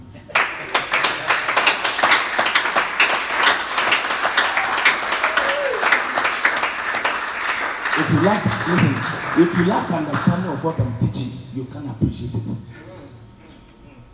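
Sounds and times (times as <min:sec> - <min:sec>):
audience applause: 0:00.3 - 0:10.4
speech: 0:08.2 - 0:12.7.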